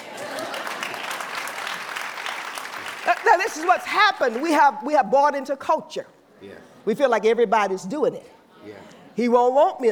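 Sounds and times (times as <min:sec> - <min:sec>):
audience clapping: 0:00.0 - 0:04.6
speech: 0:03.3 - 0:09.8.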